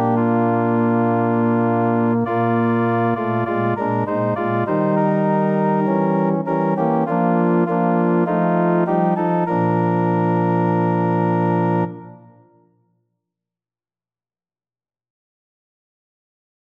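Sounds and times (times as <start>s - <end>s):
organ: 0.0s - 12.4s.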